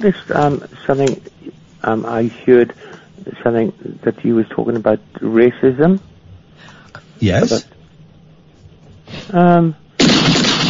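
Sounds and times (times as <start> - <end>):
speech: 0.0 - 7.7, 9.3 - 9.8
gunshot from a gun in a radio studio: 10.0 - 10.6.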